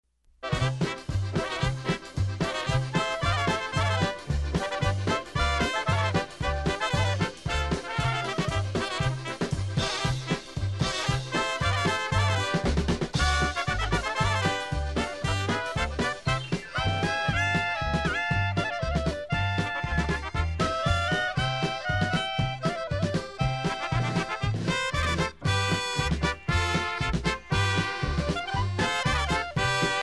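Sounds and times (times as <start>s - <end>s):
polka music: 0.4s - 30.0s.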